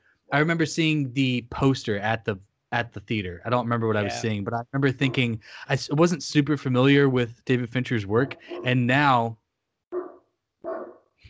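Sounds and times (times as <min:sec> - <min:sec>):
speech: 0:00.3 - 0:09.4
dog barking: 0:05.0 - 0:05.3, 0:08.2 - 0:08.8, 0:09.9 - 0:11.1.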